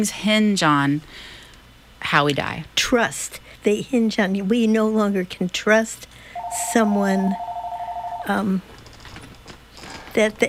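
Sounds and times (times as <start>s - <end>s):
speech: 0.0s - 1.3s, 2.0s - 7.5s, 8.2s - 8.7s, 10.2s - 10.4s
telephone ringing: 6.4s - 8.6s.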